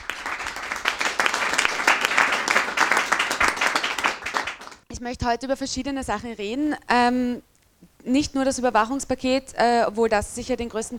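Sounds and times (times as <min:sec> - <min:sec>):
audience applause: 0:00.0 - 0:04.8
speech: 0:05.0 - 0:10.9.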